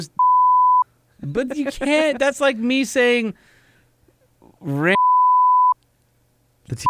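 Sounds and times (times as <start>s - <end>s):
high-pitched censor bleep over a spoken word: 0.2s - 0.8s, 5.0s - 5.8s
speech: 1.2s - 3.5s, 4.6s - 5.0s, 6.7s - 6.8s.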